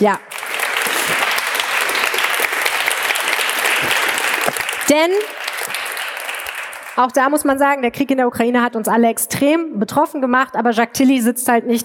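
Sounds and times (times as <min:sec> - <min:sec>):
speech: 0:00.0 - 0:00.3, 0:04.9 - 0:05.4, 0:07.0 - 0:11.8
audience applause: 0:00.0 - 0:07.0.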